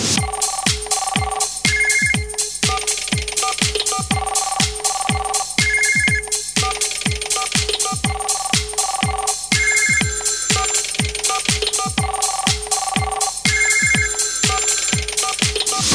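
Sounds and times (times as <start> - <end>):
old phone: 0.2 - 15.9.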